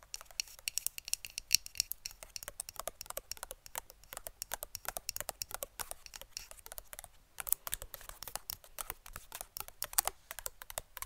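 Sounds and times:
rapid fingernail tapping: 0.0s - 11.0s.

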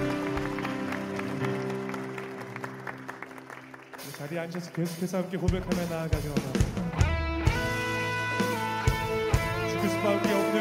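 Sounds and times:
audience applause: 0.0s - 6.6s
sustained keyboard chords: 0.0s - 10.5s
speech: 4.2s - 7.0s.

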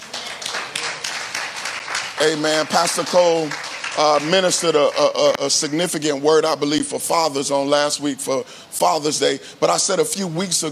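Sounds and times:
audience hand clapping: 0.0s - 5.9s
speech: 2.2s - 10.7s.

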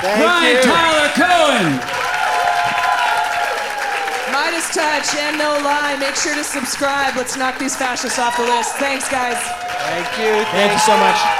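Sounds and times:
speech: 0.0s - 0.8s, 4.6s - 11.3s
crowd applauding: 0.0s - 11.3s.

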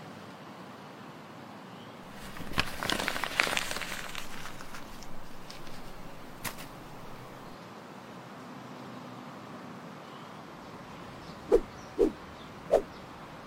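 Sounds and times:
low steady hiss: 2.1s - 7.6s
flying broom sweeping past in an airy whoosh: 11.5s - 12.9s.

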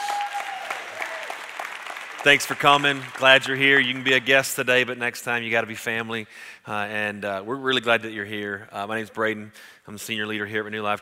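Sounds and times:
audience applause: 0.0s - 4.4s
speech: 2.2s - 11.0s.

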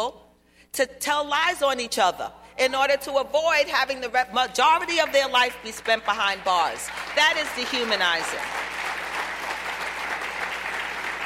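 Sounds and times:
speech: 0.0s - 8.6s
audience clapping: 5.1s - 11.2s.

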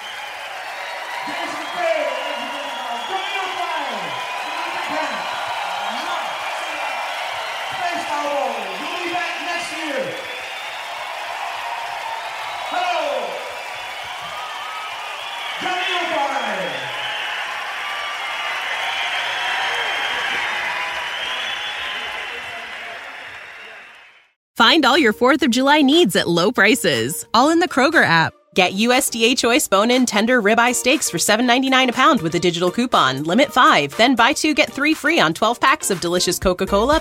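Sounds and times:
rising and falling whoops and cheers: 0.0s - 24.2s
crowd applause after live concert: 0.0s - 24.4s
speech: 24.7s - 36.9s.

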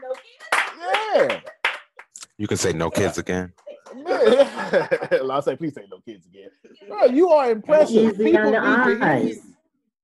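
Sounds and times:
audience clapping: 0.0s - 2.2s
speech: 1.2s - 1.5s, 2.4s - 3.6s, 4.2s - 9.5s
laughter: 2.6s - 5.8s, 6.4s - 9.4s.

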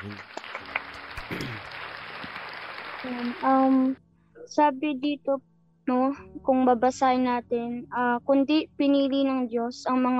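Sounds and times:
speech: 0.0s - 0.3s, 3.0s - 10.1s
congregation applauding after a Bible reading during a church service: 0.0s - 3.8s.

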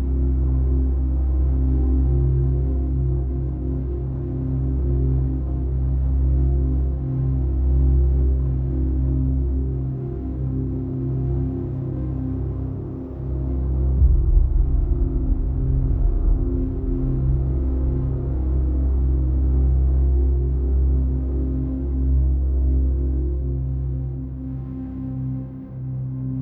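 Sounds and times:
deep ambient drone of low sustained tones, distant planet ambience: 0.0s - 26.4s.

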